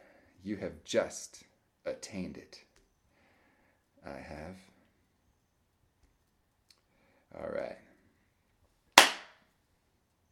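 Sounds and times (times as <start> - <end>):
speech: 0.4 - 2.7, 4.0 - 4.7, 7.3 - 7.8
single hand clap for sound editing sync: 9.0 - 9.4.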